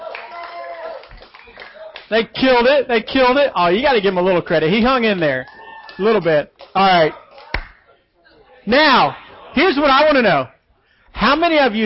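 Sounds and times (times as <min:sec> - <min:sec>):
crowd clapping: 0:00.0 - 0:02.2, 0:04.8 - 0:07.9
speech: 0:02.1 - 0:07.2, 0:08.7 - 0:11.8.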